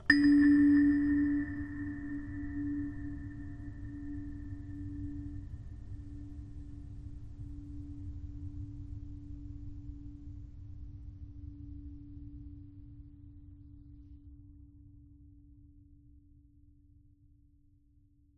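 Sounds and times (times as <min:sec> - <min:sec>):
low ambient abstract chimes: 0:00.0 - 0:06.4.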